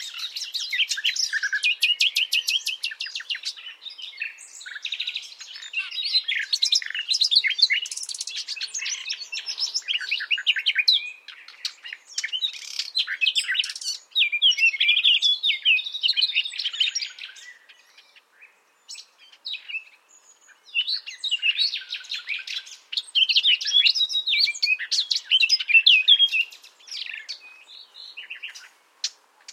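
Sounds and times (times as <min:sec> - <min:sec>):
common nightingale singing: 0:00.0 - 0:29.5.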